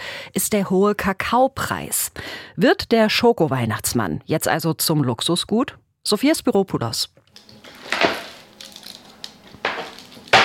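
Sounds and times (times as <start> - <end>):
speech: 0.4 - 8.0
pralines knocked out of a casting mold: 7.4 - 10.4.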